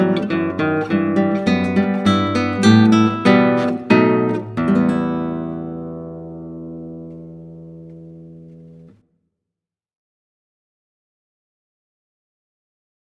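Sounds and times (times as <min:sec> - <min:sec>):
classical guitar: 0:00.0 - 0:09.1.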